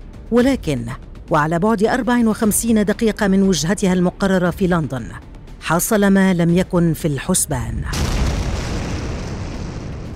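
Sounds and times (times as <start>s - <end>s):
speech: 0.3s - 8.2s
explosion of an airplane in midair: 7.9s - 10.1s.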